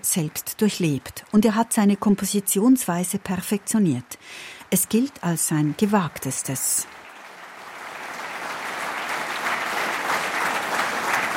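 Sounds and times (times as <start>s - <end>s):
speech: 0.0s - 7.0s
audience applause after a concert: 6.8s - 11.3s.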